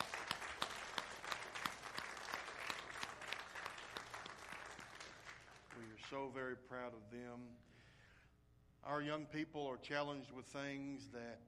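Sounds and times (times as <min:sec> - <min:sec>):
audience applause: 0:00.0 - 0:06.0
speech: 0:05.8 - 0:07.7, 0:08.8 - 0:11.4.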